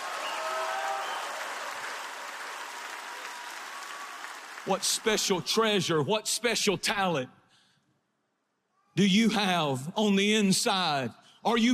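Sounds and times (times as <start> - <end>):
audience clapping hands: 0.0 - 5.6
speech: 4.6 - 7.4, 9.0 - 11.7.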